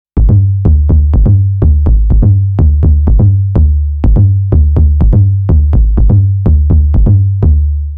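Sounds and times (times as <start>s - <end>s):
tom bass: 0.2s - 7.9s.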